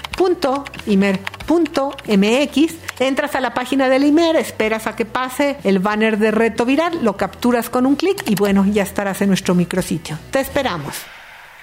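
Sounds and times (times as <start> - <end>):
fast computer keyboard typing entering a web address: 0.0 - 4.2, 7.0 - 8.8
speech: 0.2 - 11.2.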